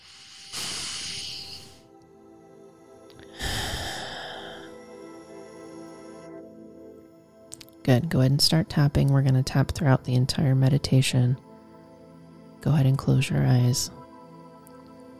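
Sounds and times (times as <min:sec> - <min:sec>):
deep inhale and exhale at the start of a guided meditation: 0:00.0 - 0:01.9, 0:03.2 - 0:05.0
speech: 0:07.9 - 0:11.5, 0:12.6 - 0:14.0.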